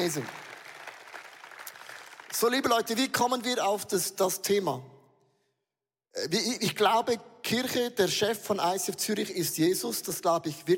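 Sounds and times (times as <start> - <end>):
speech: 0.0 - 0.5, 2.3 - 4.9, 6.1 - 10.7
audience applause: 0.0 - 2.6.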